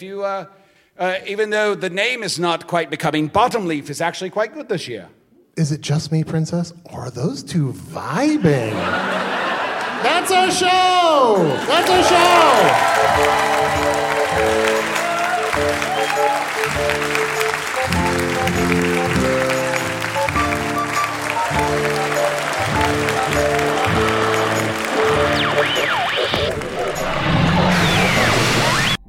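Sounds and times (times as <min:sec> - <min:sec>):
speech: 0:00.0 - 0:09.4, 0:10.0 - 0:14.9, 0:15.6 - 0:18.7
laughter: 0:08.2 - 0:13.6
audience applause: 0:11.3 - 0:28.4.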